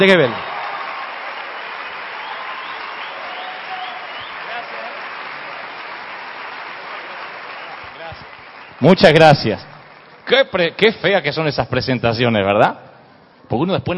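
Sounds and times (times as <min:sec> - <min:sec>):
speech: 0:00.0 - 0:00.5, 0:08.8 - 0:09.7, 0:10.3 - 0:12.9, 0:13.5 - 0:13.9
loud audience applause: 0:00.0 - 0:10.8.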